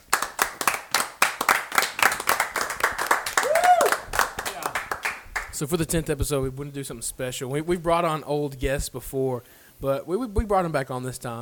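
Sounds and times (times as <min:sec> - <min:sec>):
applause sound effect: 0:00.0 - 0:05.6
speech: 0:05.6 - 0:11.4.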